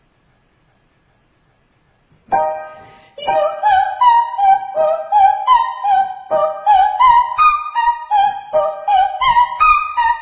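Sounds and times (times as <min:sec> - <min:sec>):
very high triads and octaves: 0:02.3 - 0:10.0.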